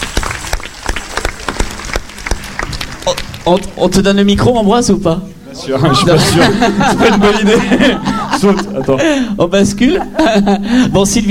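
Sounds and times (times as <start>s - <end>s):
audience applause: 0.0s - 4.0s
speech: 3.1s - 11.2s
laughter: 5.6s - 11.0s.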